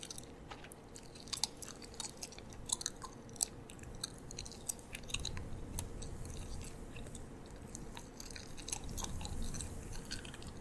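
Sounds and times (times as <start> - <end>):
gum being chewed: 0.0 - 10.6.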